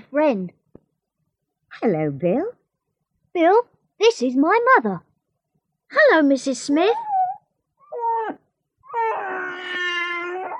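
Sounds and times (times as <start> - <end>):
speech: 0.1 - 0.6, 1.8 - 2.6, 3.4 - 5.1, 5.9 - 7.1
little boy wailing: 7.9 - 10.5.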